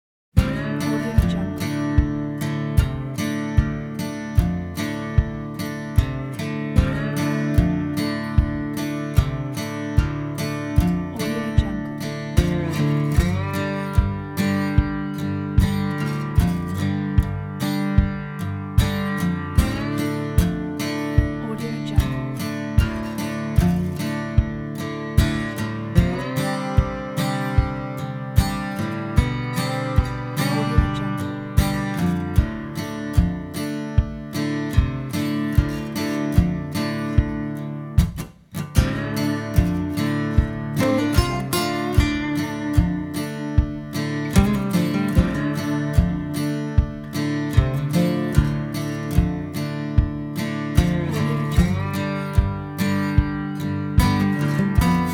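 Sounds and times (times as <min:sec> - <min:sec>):
southern acoustic music: 0:00.4 - 0:55.1.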